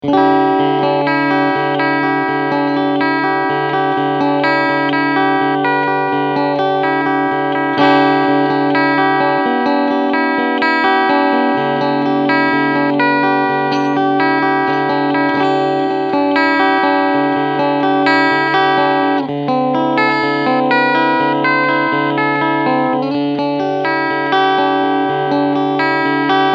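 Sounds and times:
clean guitar on middle pickup: 0.0s - 26.5s.

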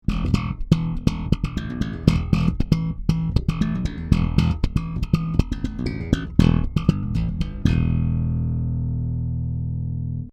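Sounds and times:
Warwick Streamer two-pickup bass guitar playing pop: 0.0s - 10.3s.

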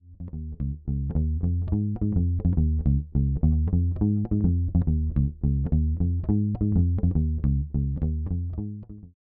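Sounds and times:
bass through Fender Tonerhammer with drive at zero and flat EQ: 0.0s - 9.2s.

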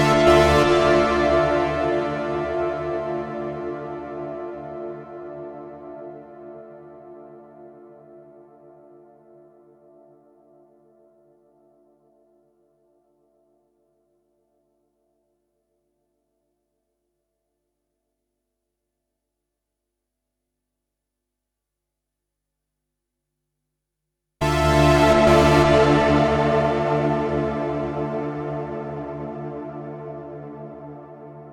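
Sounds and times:
ambient chorus effect: 0.0s - 5.4s, 24.4s - 31.5s.

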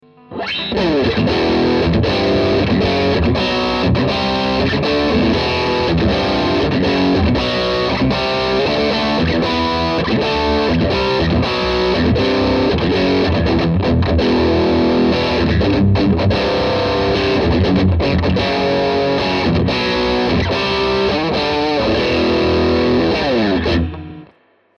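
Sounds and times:
Strat electric guitar with modern gain: 0.0s - 24.5s.

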